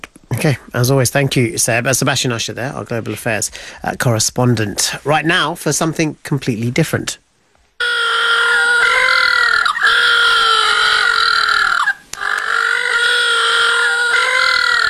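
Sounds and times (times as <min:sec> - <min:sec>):
speech: 0:00.4 - 0:07.2
little blue penguins calling in a harsh braying chorus: 0:07.8 - 0:14.8.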